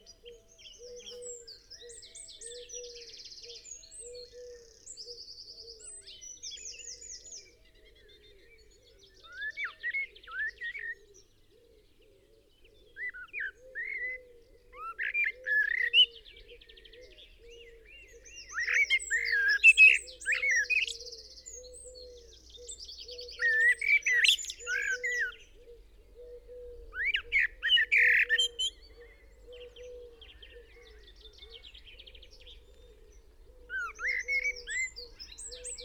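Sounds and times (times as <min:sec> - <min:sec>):
Eurasian blackbird singing: 0:00.0 - 0:11.3, 0:12.6 - 0:35.8
other birds chirping: 0:12.8 - 0:35.8.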